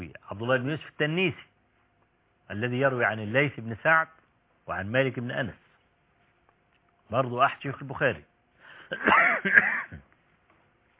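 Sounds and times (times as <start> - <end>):
speech: 0.2 - 1.5, 2.5 - 5.6, 7.1 - 8.3, 8.9 - 9.7
person coughing from dusty Cairo air: 8.9 - 10.1
throat clearing: 8.9 - 10.1.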